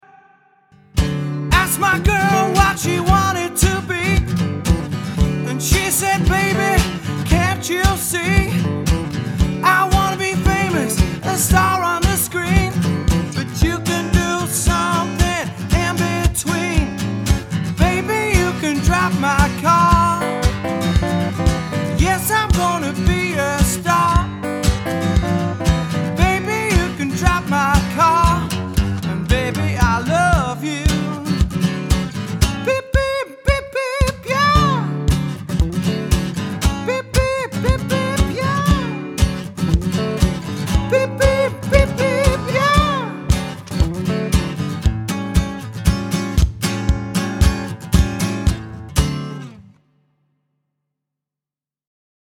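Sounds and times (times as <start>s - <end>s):
solo acoustic guitar: 0.8s - 50.0s
person singing: 1.5s - 4.0s, 5.5s - 8.5s, 9.6s - 11.7s, 19.8s - 23.4s, 24.2s - 27.2s.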